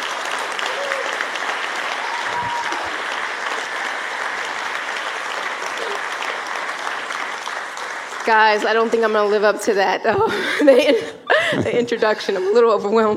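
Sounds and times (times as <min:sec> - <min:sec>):
audience applause welcoming a guest onto the stage: 0:00.0 - 0:10.0
speech: 0:08.3 - 0:13.1.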